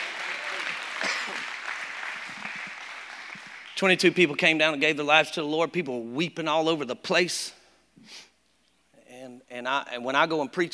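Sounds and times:
audience clapping: 0.0 - 4.5
speech: 3.8 - 8.3, 9.5 - 10.7.

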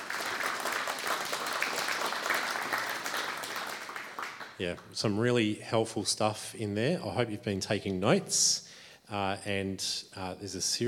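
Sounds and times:
audience applause: 0.0 - 4.6
speech: 4.6 - 10.8.

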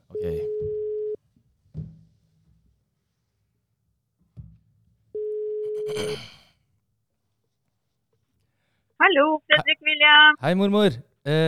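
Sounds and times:
telephone ringback tones: 0.2 - 1.2, 5.2 - 5.9
faint rustles and soft thumps: 0.7 - 3.5, 4.2 - 5.1
speech: 9.2 - 11.4.

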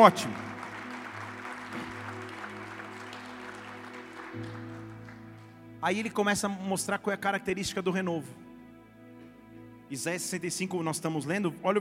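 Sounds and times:
speech: 0.0 - 0.5, 5.8 - 8.4, 9.9 - 11.8
audience applause: 0.0 - 5.6.

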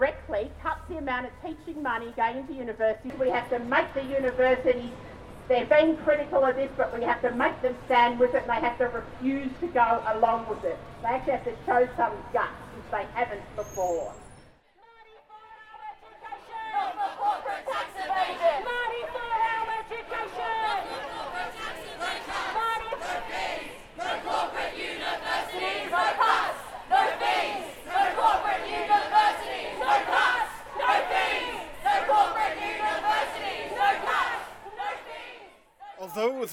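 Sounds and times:
faint traffic: 0.0 - 36.5
speech: 1.1 - 14.2, 36.0 - 36.5
crowd of young voices chanting and shouting: 15.7 - 36.5.

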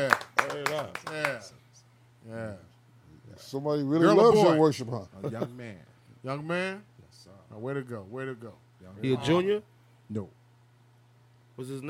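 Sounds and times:
hand claps: 0.0 - 1.4
speech: 3.5 - 10.4, 11.6 - 11.8.

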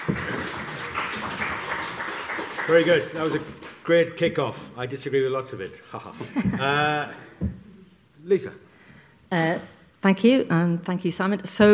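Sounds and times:
audience applause: 0.0 - 3.9
speech: 2.7 - 7.6, 8.2 - 8.6, 9.3 - 11.7
laughter: 5.9 - 7.1.

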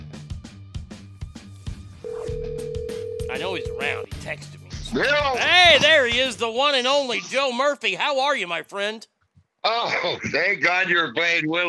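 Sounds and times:
telephone dialing beeps: 2.1 - 4.0
speech: 3.4 - 11.6.

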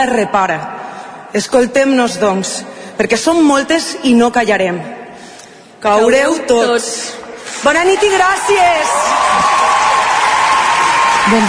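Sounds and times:
speech: 0.0 - 5.0, 5.8 - 9.6, 11.2 - 11.4
audience applause after a speech: 8.0 - 11.4.

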